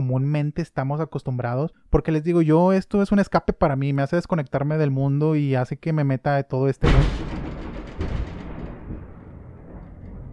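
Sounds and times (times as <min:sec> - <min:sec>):
speech: 0:00.1 - 0:07.3
very loud thunderclap: 0:06.8 - 0:10.3.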